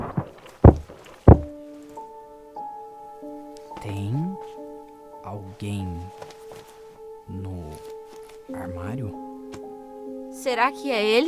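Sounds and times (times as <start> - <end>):
heavy thuds of someone forcing open a locked door: 0.1 - 1.6
speech: 5.6 - 6.2, 8.8 - 9.2, 10.4 - 11.2.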